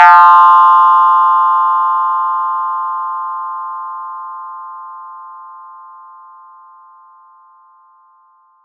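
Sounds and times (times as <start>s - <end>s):
ringing effect: 0.0s - 2.8s.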